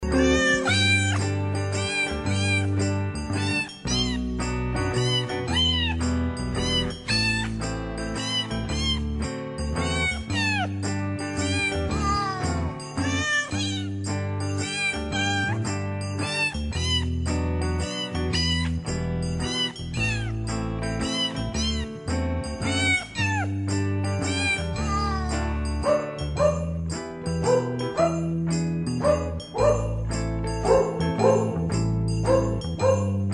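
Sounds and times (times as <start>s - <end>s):
cats and dogs singing Christmas songs: 0.1s - 10.7s, 11.3s - 20.4s, 21.0s - 22.0s, 22.6s - 26.8s, 27.4s - 28.4s, 29.0s - 33.2s.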